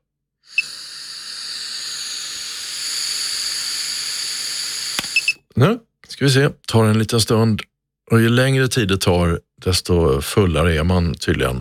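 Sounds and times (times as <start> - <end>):
breath blown into a breathalyzer: 0.4 - 5.4
speech: 5.6 - 11.5.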